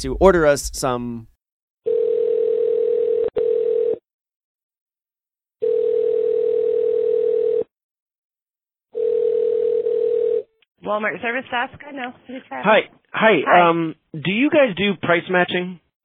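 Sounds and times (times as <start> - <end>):
speech: 0.0 - 1.3, 10.9 - 15.8
telephone tone while placing a call: 1.9 - 4.0, 5.6 - 7.7, 9.0 - 10.5.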